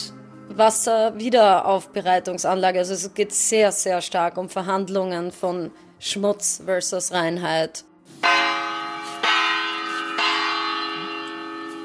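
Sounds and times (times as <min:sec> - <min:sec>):
speech: 0:00.6 - 0:08.4
glockenspiel chimes at Austrian pavilion opening: 0:08.2 - 0:11.8.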